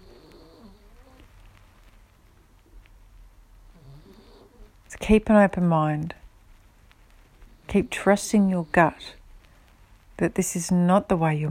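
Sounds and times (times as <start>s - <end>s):
dog snoring: 0.0s - 1.3s, 3.7s - 4.7s
speech: 5.0s - 6.2s, 7.7s - 9.2s, 10.2s - 11.4s.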